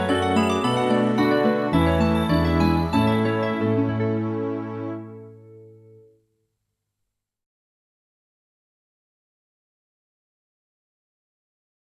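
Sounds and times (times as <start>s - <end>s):
music: 0.0s - 6.4s.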